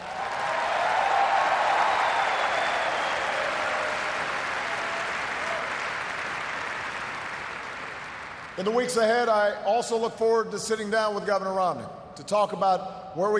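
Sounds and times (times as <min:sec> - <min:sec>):
audience applause: 0:00.0 - 0:08.6
speech: 0:08.6 - 0:13.3.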